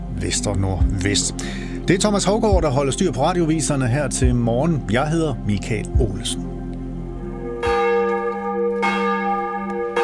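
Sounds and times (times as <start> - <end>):
speech: 0.2 - 6.4
church bells ringing for morning service: 7.2 - 10.0.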